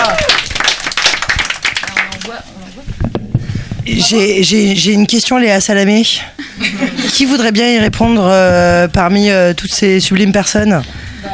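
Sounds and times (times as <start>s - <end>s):
audience applause: 0.0s - 2.4s
speech: 4.0s - 11.3s
laughter: 6.4s - 7.4s.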